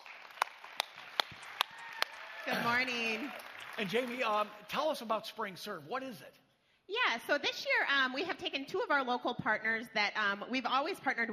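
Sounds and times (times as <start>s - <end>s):
sharp hand claps: 0.0s - 4.6s
speech: 2.5s - 11.3s.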